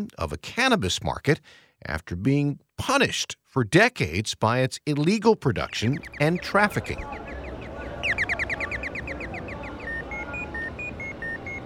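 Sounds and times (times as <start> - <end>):
speech: 0.0 - 7.2
pedestrian crossing signal chirps: 5.6 - 11.6
street traffic rumble: 5.6 - 11.6
crowd noise: 5.9 - 11.6.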